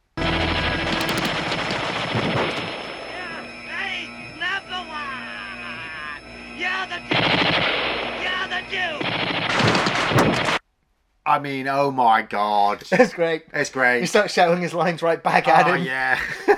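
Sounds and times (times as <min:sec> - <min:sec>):
M60 machine gun firing: 0:00.2 - 0:03.7, 0:07.0 - 0:10.6
speech: 0:11.4 - 0:16.5
laughter: 0:12.8 - 0:13.4, 0:15.3 - 0:16.5.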